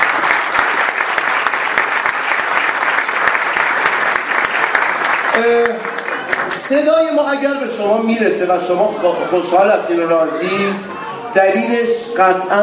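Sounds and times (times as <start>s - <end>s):
audience applause at a live event in Isfahan: 0.0s - 6.9s
speech: 6.7s - 12.6s.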